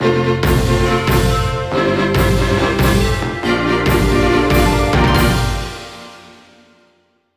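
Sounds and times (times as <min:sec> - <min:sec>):
festive jingle music: 0:00.0 - 0:07.0.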